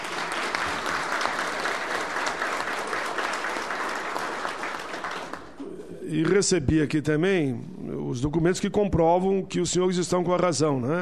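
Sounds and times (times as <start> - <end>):
audience applause: 0.0 - 5.6
speech: 6.1 - 11.0.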